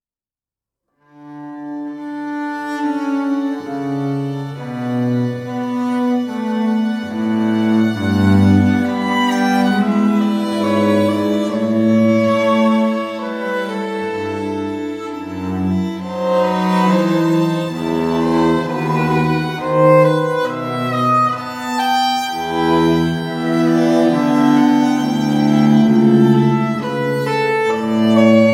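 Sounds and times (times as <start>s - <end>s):
classical string piece: 1.0s - 28.5s.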